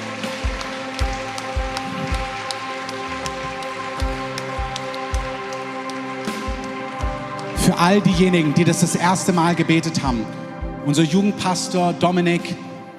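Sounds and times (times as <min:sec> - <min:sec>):
audience applause: 0:00.0 - 0:10.3
speech: 0:07.7 - 0:12.7.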